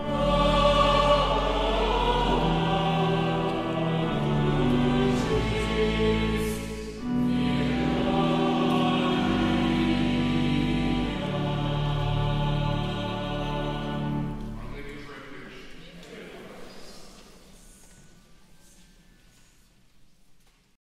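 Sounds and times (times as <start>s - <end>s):
hymn sung at a Catholic parish: 0.0s - 14.7s.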